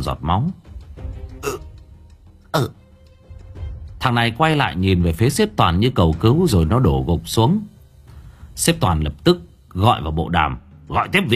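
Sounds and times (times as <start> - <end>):
speech: 0.0 - 0.7, 2.5 - 2.8, 4.0 - 7.7, 8.6 - 11.3
choked hiccup gasps from a man slashed by a knife: 1.4 - 1.7, 2.5 - 2.8.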